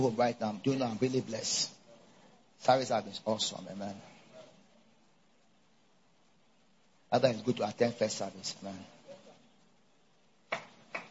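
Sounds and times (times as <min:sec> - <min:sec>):
speech: 0:00.0 - 0:01.8, 0:02.6 - 0:04.1, 0:07.1 - 0:09.0
sharp claps in a reverberant hall: 0:10.5 - 0:11.0.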